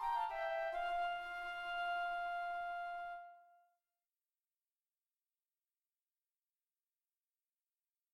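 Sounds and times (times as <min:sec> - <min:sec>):
flutes: 0:00.0 - 0:03.7.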